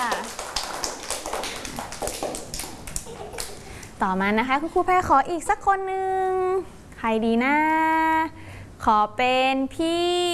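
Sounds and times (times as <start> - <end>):
applause: 0.0 - 3.9
speech: 4.0 - 10.3.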